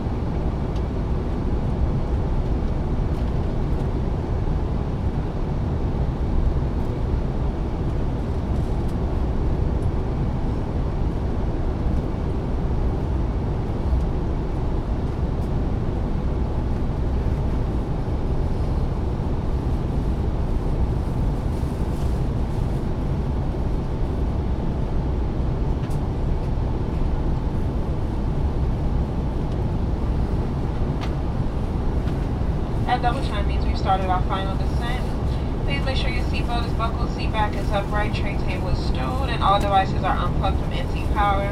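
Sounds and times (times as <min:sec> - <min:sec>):
airplane cabin noise during a flight: 0:00.0 - 0:41.5.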